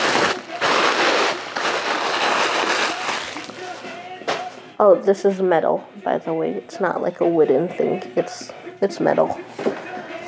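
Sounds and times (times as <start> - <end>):
tissue paper from a package rustling: 0.0 - 4.5
speech: 4.8 - 9.8.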